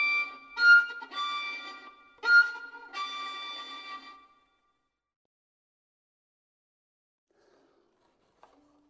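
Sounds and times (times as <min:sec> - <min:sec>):
solo polska folk dance tune: 0:00.0 - 0:04.6.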